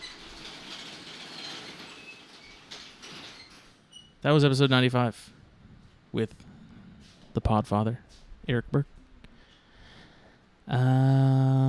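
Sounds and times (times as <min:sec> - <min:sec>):
garage door rolling down: 0:00.0 - 0:04.4
speech: 0:04.2 - 0:05.4, 0:06.1 - 0:06.5, 0:07.4 - 0:09.0, 0:10.7 - 0:11.6.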